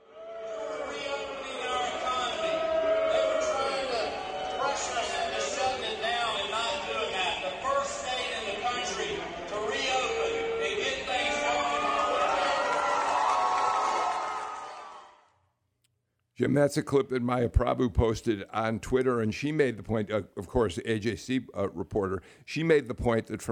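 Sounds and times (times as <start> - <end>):
rally crowd roaring and shouting: 0.0 - 15.2
speech: 16.4 - 23.5.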